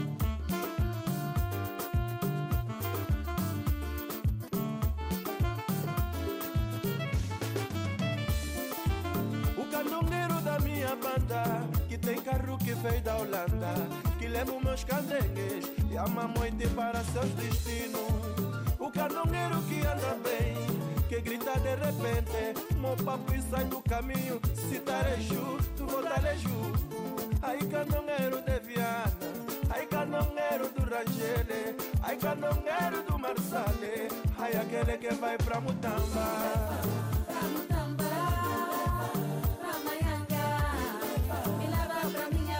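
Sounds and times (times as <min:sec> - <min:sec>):
loud music with a fast beat on a noisy street in Luanda: 0:00.0 - 0:42.5.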